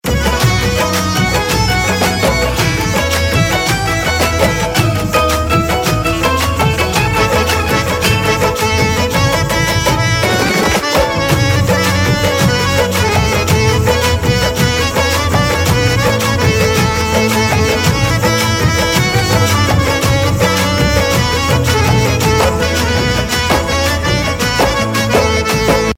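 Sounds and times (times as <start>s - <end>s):
instrumental ringtone: 0.2s - 25.9s.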